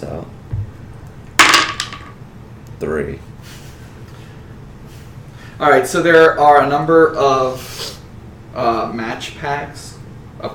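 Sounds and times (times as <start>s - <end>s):
d20 die being rolled: 1.4s - 2.2s
speech: 2.8s - 3.7s, 5.6s - 7.8s, 8.6s - 10.5s.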